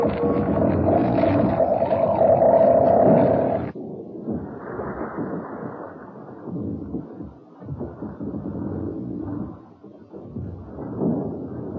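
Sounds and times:
giant woodworm monster roaring: 0.0s - 3.7s
giant woodworm monster's low rumbling growls and grunts: 0.0s - 3.7s.

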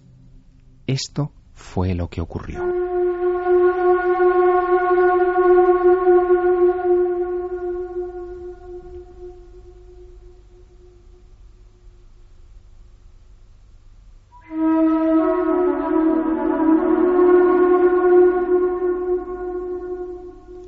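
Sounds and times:
speech: 0.9s - 2.8s
improvised flute playing echoing inside pyramid chamber: 2.6s - 11.8s, 14.4s - 20.6s.

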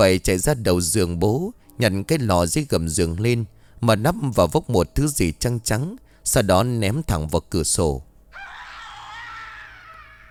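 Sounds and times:
speech: 0.0s - 8.1s
piercing scream: 8.3s - 10.2s.

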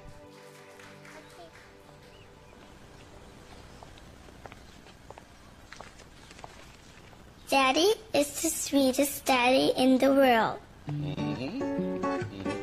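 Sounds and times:
audience applause: 0.3s - 2.3s
speech: 7.5s - 11.6s.

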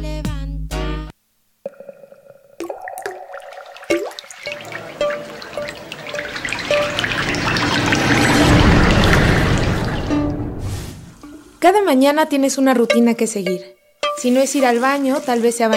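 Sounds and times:
water running from a tap: 1.7s - 10.6s, 14.2s - 15.7s
speech: 11.6s - 15.7s.

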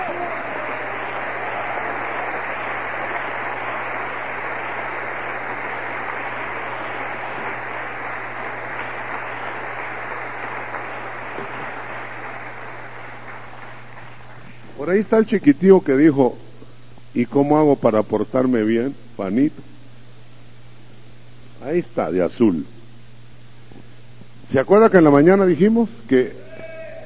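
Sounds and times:
crowd applauding: 0.0s - 14.7s
speech: 14.9s - 16.4s, 17.2s - 19.7s, 21.7s - 22.7s, 24.5s - 26.4s.

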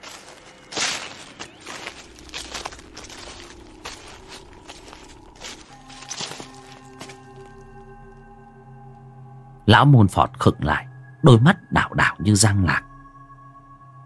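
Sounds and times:
shuffling dragging footsteps behind someone: 0.0s - 7.6s
speech: 9.7s - 12.9s.

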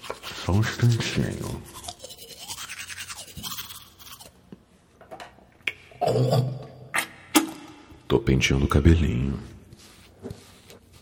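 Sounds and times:
teeth being brushed with a toothbrush: 0.0s - 4.4s
speech: 0.5s - 1.7s, 6.1s - 6.6s, 8.3s - 9.6s.

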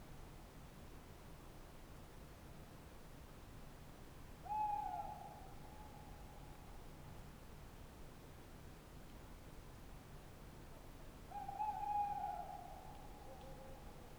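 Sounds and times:
tawny owl hoot: 4.5s - 5.3s, 11.3s - 13.8s.

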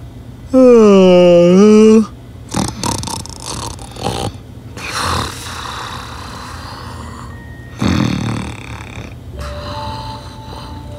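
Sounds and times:
voice imitating the snore of a tired painter: 0.5s - 10.9s.

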